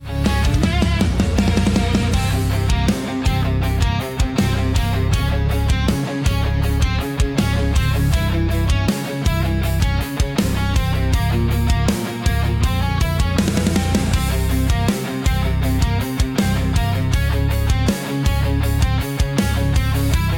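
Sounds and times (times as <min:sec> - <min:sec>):
aggressive eastern fight music: 0:00.0 - 0:20.3.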